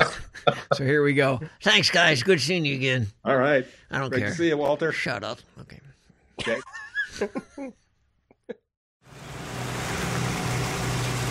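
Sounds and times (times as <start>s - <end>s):
speech: 0.7s - 7.8s
car driving road and engine rumble: 9.1s - 11.2s.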